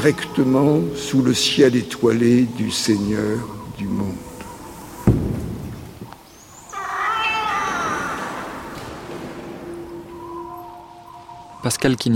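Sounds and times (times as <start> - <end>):
speech: 0.0 - 4.3, 11.8 - 12.1
falcon shrill cries: 6.6 - 9.1.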